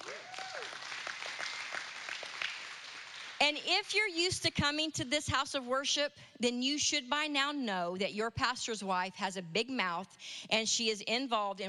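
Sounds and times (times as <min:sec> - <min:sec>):
rising-and-falling whoop: 0:00.0 - 0:00.8
audience applause: 0:00.0 - 0:03.4
speech: 0:03.5 - 0:11.6.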